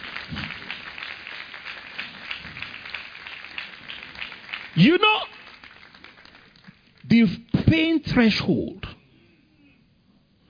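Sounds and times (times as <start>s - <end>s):
audience clapping for the women: 0.0s - 7.2s
speech: 4.8s - 5.4s, 7.1s - 8.8s.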